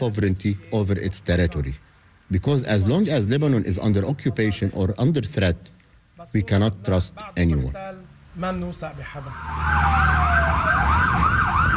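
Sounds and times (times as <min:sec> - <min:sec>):
speech: 0:00.0 - 0:10.7
emergency vehicle sirens: 0:09.2 - 0:11.7.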